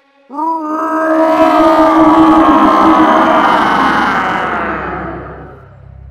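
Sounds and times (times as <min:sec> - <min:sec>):
huge victory roar: 0:00.3 - 0:06.0.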